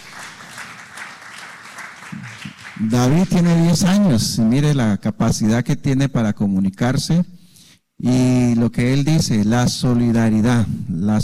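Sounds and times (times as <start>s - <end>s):
audience applause: 0.0s - 3.5s
speech: 2.8s - 7.4s, 8.0s - 11.2s.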